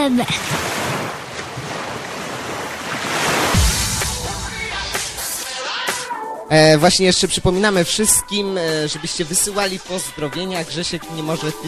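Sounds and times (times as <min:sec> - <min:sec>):
speech: 0:00.0 - 0:00.7, 0:06.5 - 0:11.6
sea waves washing onto a beach: 0:00.0 - 0:05.6.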